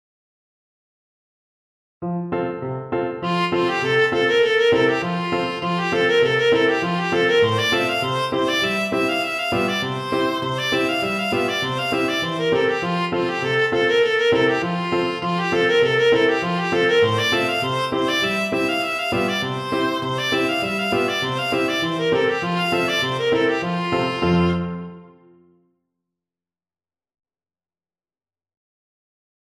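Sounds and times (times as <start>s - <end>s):
viola played with fast fingers: 3.2s - 25.2s.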